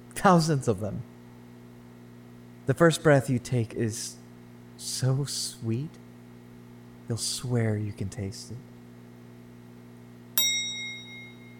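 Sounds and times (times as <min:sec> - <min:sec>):
speech: 0:00.2 - 0:01.1, 0:02.7 - 0:04.2, 0:04.8 - 0:06.0, 0:07.1 - 0:08.7
steady low hum: 0:10.4 - 0:11.5
timer bell ringing: 0:10.4 - 0:11.5.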